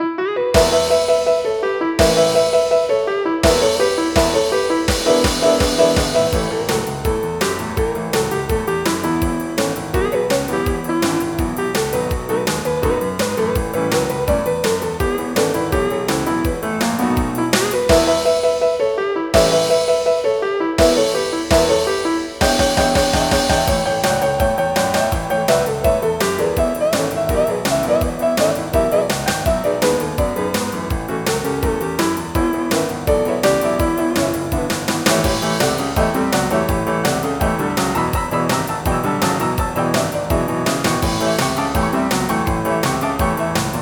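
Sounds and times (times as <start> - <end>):
rock and roll music: 0.6 - 43.7.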